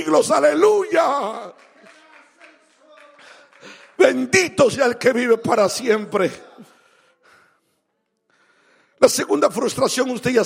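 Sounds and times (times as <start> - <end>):
speech: 0.0 - 1.7, 4.0 - 6.5, 9.0 - 10.4
congregation clapping in a church service as an offering of praise to God: 0.0 - 6.3.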